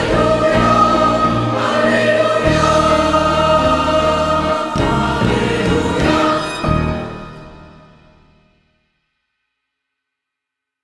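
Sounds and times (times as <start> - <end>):
singing: 0.0 - 7.4.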